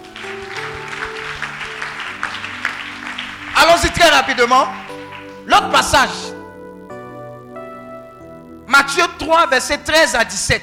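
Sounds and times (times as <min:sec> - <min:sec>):
church congregation clapping in acclamation of God: 0:00.0 - 0:06.6
sustained musical tones: 0:00.0 - 0:10.5
speech: 0:03.8 - 0:04.8, 0:05.5 - 0:06.3, 0:08.8 - 0:10.6.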